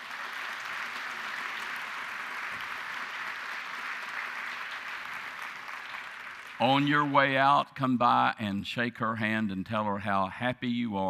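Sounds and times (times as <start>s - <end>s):
church congregation applauding to welcome a new member during a Baptist service: 0.0s - 7.6s
speech: 6.6s - 11.0s.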